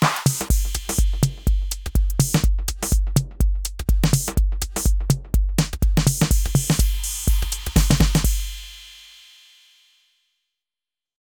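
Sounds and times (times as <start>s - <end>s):
progressive house music: 0.0s - 8.6s.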